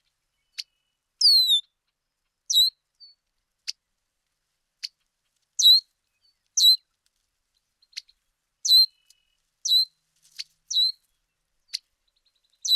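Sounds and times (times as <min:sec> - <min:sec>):
bird song of high descending whistled phrases: 0:00.5 - 0:01.7, 0:02.5 - 0:02.8, 0:05.6 - 0:05.8, 0:06.6 - 0:06.8, 0:08.6 - 0:09.9, 0:10.7 - 0:11.0.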